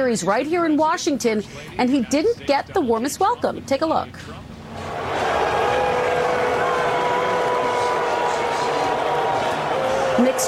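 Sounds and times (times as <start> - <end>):
speech: 0.0 - 4.5
large stadium crowd booing: 4.7 - 10.4.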